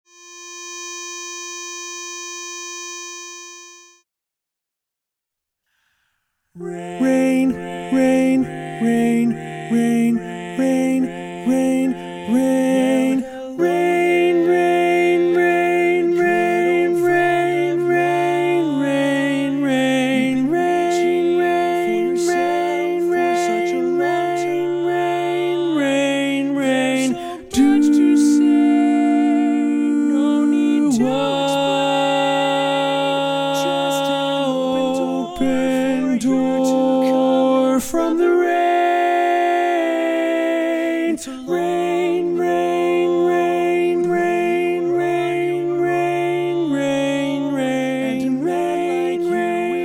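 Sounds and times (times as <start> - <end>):
chorus singing with predominant baritone: 6.6 - 49.8.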